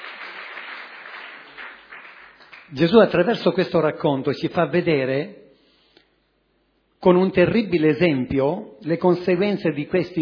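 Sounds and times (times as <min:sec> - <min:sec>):
audience applause: 0:00.0 - 0:02.7
speech: 0:02.7 - 0:05.4, 0:07.0 - 0:10.2.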